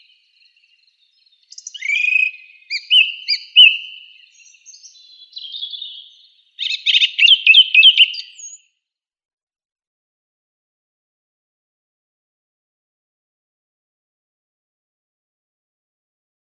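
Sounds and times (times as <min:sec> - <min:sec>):
song thrush singing: 0:00.0 - 0:08.7.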